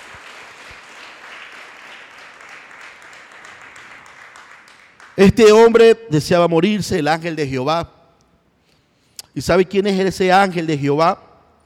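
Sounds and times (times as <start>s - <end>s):
audience applause: 0.0s - 5.2s
speech: 5.2s - 8.0s, 9.4s - 11.2s.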